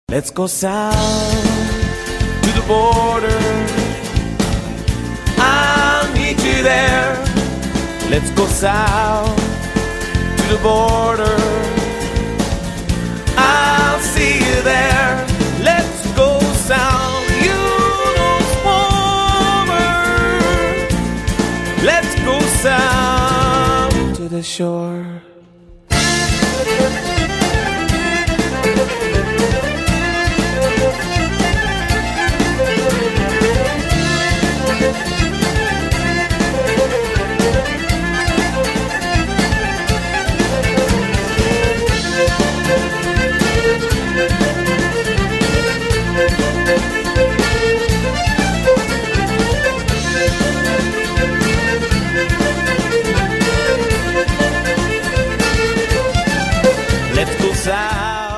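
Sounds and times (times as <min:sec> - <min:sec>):
Irish band playing: 0:00.7 - 0:24.4, 0:25.7 - 0:58.3.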